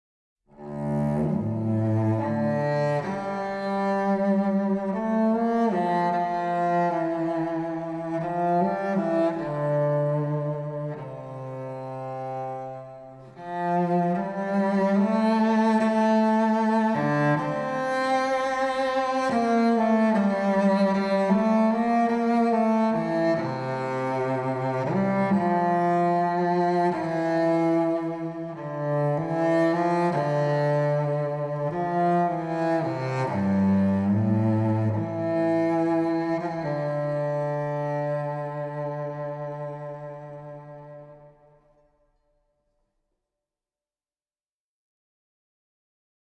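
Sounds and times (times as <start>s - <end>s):
violoncello version: 0.5s - 42.1s.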